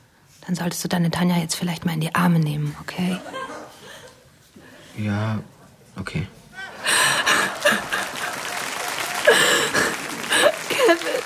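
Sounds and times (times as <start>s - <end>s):
speech: 0.5s - 3.5s, 5.0s - 6.4s
crowd applauding: 6.6s - 11.2s
brief cheers and laughs: 6.7s - 11.2s.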